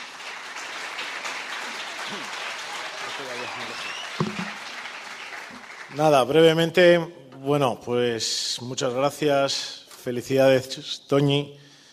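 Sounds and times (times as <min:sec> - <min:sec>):
audience applause from a large crowd: 0:00.0 - 0:06.4
brief cheers: 0:01.6 - 0:04.6
speech: 0:02.1 - 0:02.4, 0:03.2 - 0:04.0, 0:05.9 - 0:11.6.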